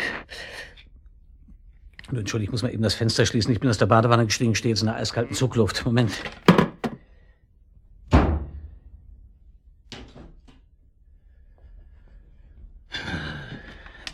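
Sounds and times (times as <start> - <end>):
speech: 2.1 - 6.5
bedroom door slamming shut in a draft: 8.1 - 8.7.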